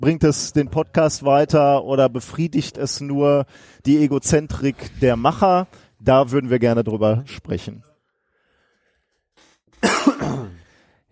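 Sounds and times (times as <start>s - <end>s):
speech: 0.0s - 7.9s
person coughing after choking on something: 9.8s - 10.7s.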